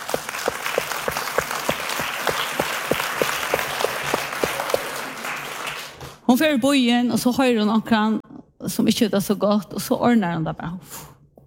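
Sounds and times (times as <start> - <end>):
audience applause: 0.0 - 6.2
speech: 6.3 - 8.2, 8.8 - 11.1.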